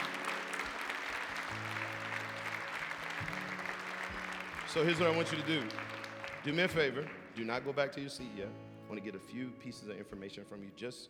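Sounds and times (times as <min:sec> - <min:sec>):
audience clapping: 0:00.0 - 0:08.0
speech: 0:04.7 - 0:11.0.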